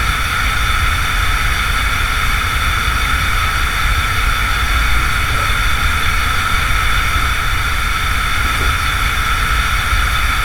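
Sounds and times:
gas hissing: 0.2 - 10.4.

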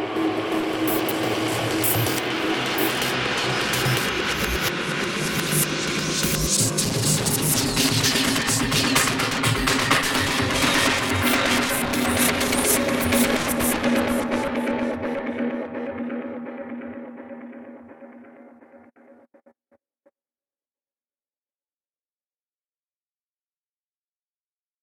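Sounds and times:
fractal drum loop: 0.2 - 19.4.

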